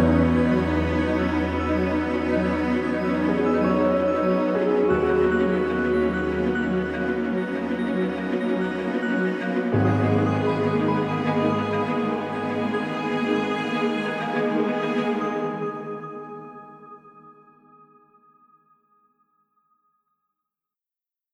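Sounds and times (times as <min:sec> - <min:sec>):
strings: 0:00.0 - 0:17.0
piano: 0:00.0 - 0:18.4.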